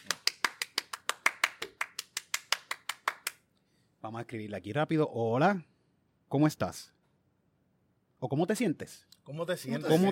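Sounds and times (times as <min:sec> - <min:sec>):
rhythmic hand clapping: 0:00.0 - 0:03.4
speech: 0:04.0 - 0:05.7, 0:06.3 - 0:07.0, 0:08.2 - 0:10.1.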